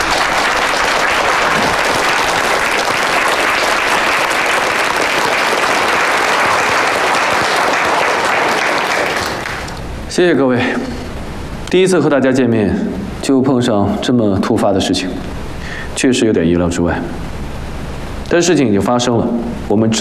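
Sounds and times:
applause: 0.0 - 9.8
speech: 10.2 - 11.0, 11.7 - 15.4, 16.0 - 17.4, 18.3 - 20.0.

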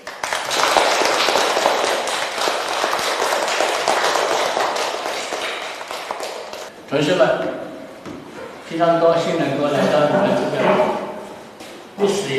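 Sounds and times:
audience applause: 0.0 - 6.7
speech: 6.9 - 7.6, 8.7 - 11.0, 12.0 - 12.3.

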